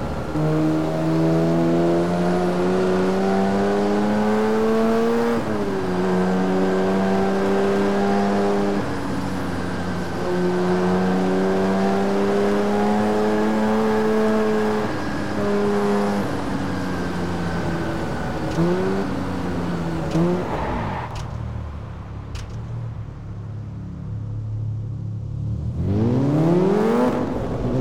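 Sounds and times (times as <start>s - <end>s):
Alfa Romeo Brera car: 0.0s - 27.7s.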